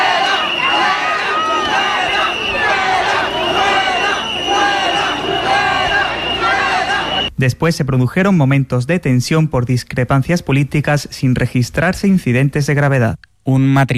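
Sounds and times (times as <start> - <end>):
protesting crowd shouting at arriving journalist: 0.0 - 7.3
speech: 7.4 - 13.9.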